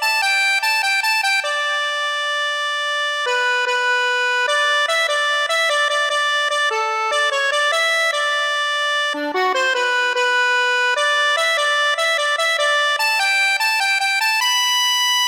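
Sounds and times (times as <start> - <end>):
accordion: 0.0 - 15.2.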